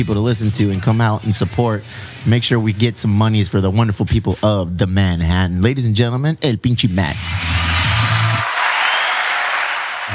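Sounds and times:
speech: 0.0s - 7.5s
applause sound effect from soundboard button: 7.5s - 10.1s.

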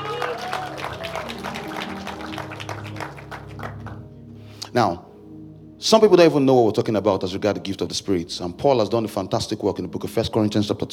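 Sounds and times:
audience clapping: 0.0s - 4.0s
speech: 4.7s - 5.1s, 5.8s - 10.9s.

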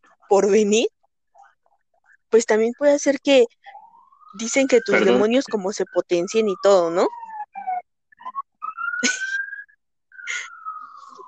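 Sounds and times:
speech: 0.3s - 1.0s, 2.3s - 3.6s, 4.4s - 7.2s
police patrol car siren: 3.6s - 11.2s.

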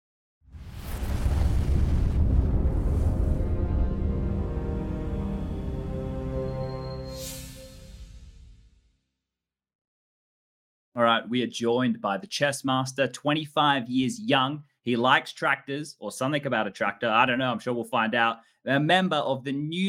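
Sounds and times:
show bumper explosion sound effects: 0.5s - 5.8s
speech: 11.0s - 19.8s.

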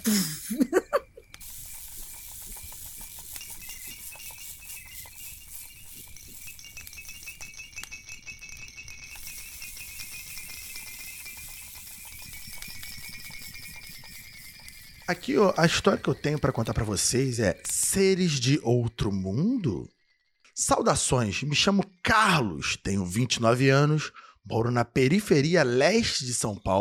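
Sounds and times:
speech: 0.0s - 0.8s, 15.1s - 20.0s, 20.6s - 26.7s
laughter: 0.1s - 1.2s
campfire crackling and popping: 1.2s - 17.9s.

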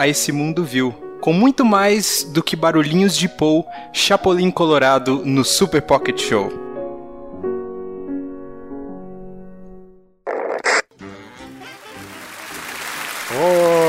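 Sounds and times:
speech: 0.0s - 6.6s
hand clapping applause: 11.8s - 13.8s.

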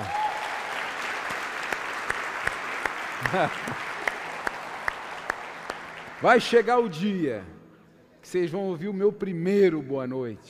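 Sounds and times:
loud applause for Jesus: 0.0s - 6.9s
speech: 3.2s - 3.9s, 6.2s - 7.6s, 8.3s - 10.4s
laughter: 3.2s - 4.0s.

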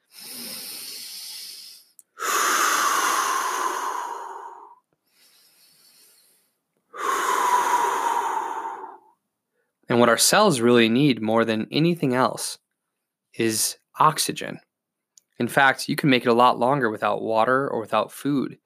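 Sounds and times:
breathing in through nose and out through mouth: 0.0s - 9.8s
speech: 10.0s - 12.6s, 13.4s - 14.7s, 15.4s - 18.6s.

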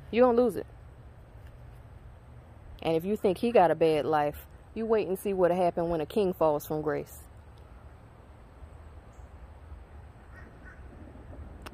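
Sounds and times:
speech: 0.1s - 0.8s, 2.8s - 7.2s
crows cawing: 10.3s - 10.9s.

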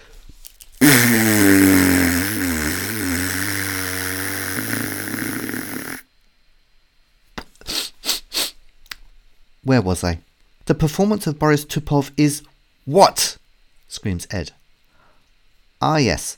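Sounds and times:
person blowing nose loudly: 0.8s - 6.0s
quick sniffs: 0.8s - 6.0s, 7.6s - 8.6s
speech: 9.8s - 14.6s, 15.8s - 16.3s.

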